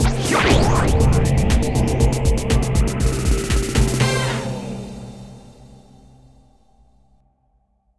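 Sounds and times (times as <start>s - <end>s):
transition sound: 0.0s - 6.8s.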